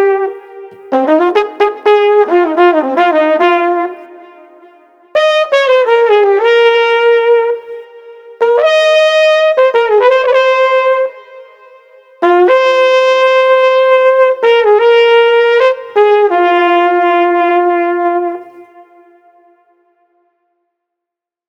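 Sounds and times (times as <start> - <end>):
tranquil flugelhorn playing in a street: 0.0 - 19.6.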